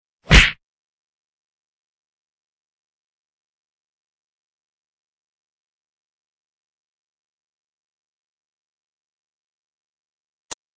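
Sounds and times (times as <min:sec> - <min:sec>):
fight sounds: 0:00.3 - 0:00.6.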